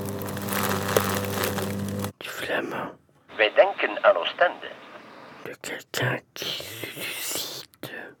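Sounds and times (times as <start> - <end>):
leaf shredder machine grinding leaves: 0.0 - 2.1
speech: 2.5 - 4.8, 5.6 - 6.7.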